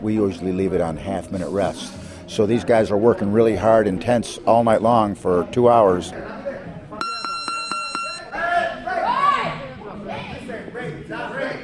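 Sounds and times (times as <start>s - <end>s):
speech: 0.0s - 6.4s
boxing gym round timer bell ringing: 7.0s - 8.3s.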